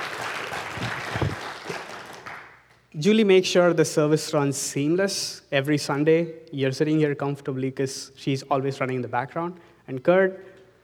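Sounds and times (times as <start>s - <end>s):
audience applause at a church service: 0.0s - 2.6s
speech: 3.0s - 10.5s.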